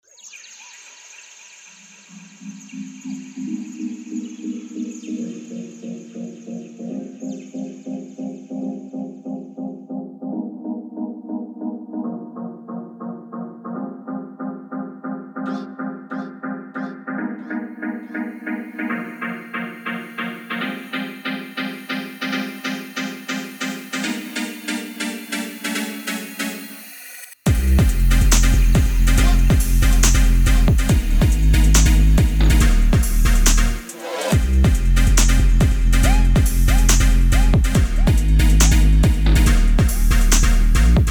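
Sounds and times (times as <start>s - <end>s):
synths: 2.0s - 41.0s.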